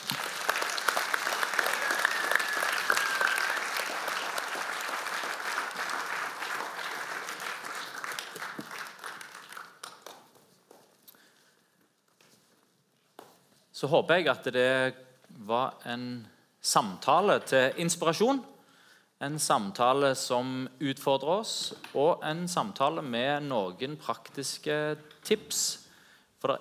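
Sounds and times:
audience applause for panel: 0.0s - 10.3s
speech: 13.8s - 18.5s, 19.2s - 25.8s.

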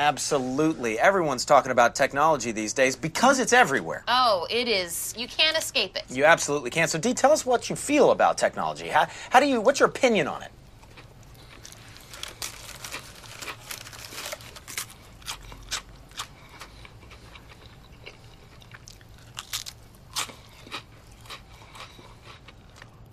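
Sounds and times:
speech: 0.0s - 10.6s
low steady hum: 0.0s - 23.1s
person crunching crackers: 10.8s - 23.1s.

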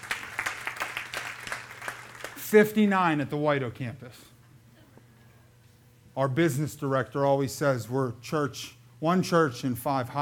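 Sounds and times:
church congregation scattered clapping: 0.0s - 2.4s
speech: 2.5s - 4.4s, 6.2s - 10.2s.

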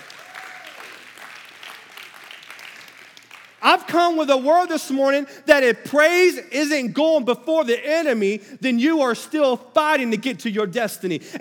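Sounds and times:
applause: 0.0s - 3.7s
speech: 3.7s - 11.3s.

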